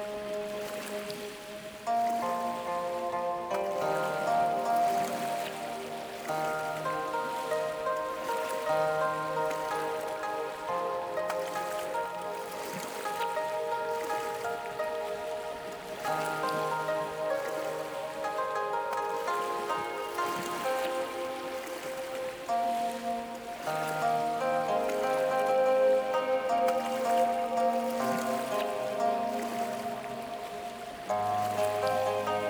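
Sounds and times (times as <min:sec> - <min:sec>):
ocean waves on a beach: 0:00.0 - 0:32.4
relaxing oriental sleep music: 0:00.0 - 0:32.4.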